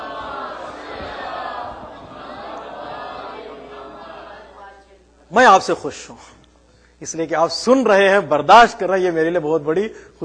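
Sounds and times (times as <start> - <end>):
large audience reciting salawat in unison: 0.0 - 5.1
speech: 5.3 - 6.4, 7.0 - 10.2.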